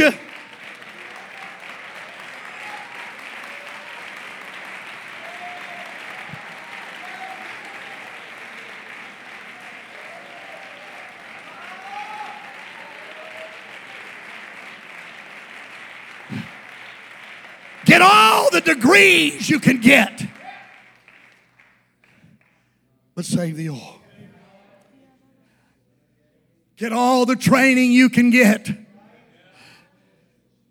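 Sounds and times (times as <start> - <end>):
speech: 0.0 - 0.3, 18.0 - 20.3, 23.2 - 24.0, 26.8 - 28.8
audience clapping: 0.0 - 22.6, 26.8 - 28.8.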